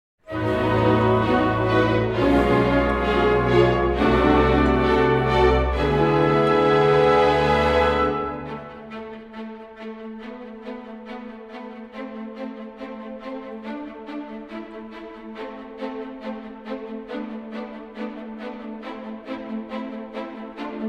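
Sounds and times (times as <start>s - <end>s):
fanfare: 0.3s - 8.9s.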